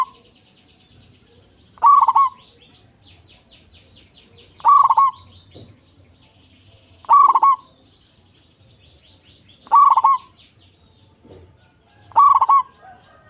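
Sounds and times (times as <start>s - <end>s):
zebra dove cooing: 1.8s - 2.4s, 4.6s - 5.3s, 7.0s - 7.7s, 9.6s - 10.3s, 12.0s - 13.2s.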